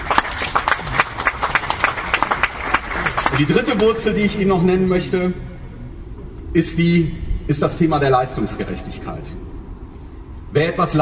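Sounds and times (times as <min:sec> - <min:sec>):
applause: 0:00.0 - 0:04.0
speech: 0:03.4 - 0:05.5, 0:06.5 - 0:09.5, 0:10.5 - 0:10.9.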